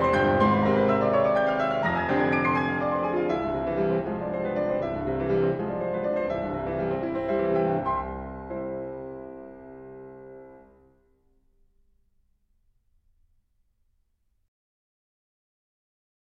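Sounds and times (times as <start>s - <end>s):
passionate evening music: 0.0s - 10.7s.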